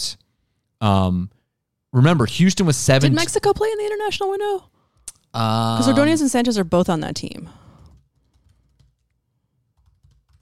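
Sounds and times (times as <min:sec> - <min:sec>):
speech: 0:00.8 - 0:04.7, 0:05.3 - 0:07.6
rapid typing on a computer keyboard: 0:07.8 - 0:10.4.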